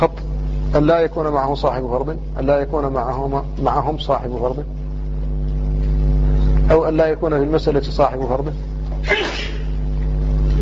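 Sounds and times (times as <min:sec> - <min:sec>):
speech: 0:00.0 - 0:04.8, 0:06.7 - 0:09.6
steady low electrical hum: 0:00.0 - 0:10.5
person sneezing: 0:09.0 - 0:09.8.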